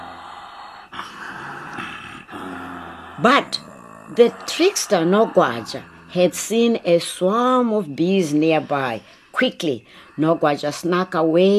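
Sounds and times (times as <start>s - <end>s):
lion snoring loudly: 0.0s - 7.2s
speech: 3.2s - 11.5s.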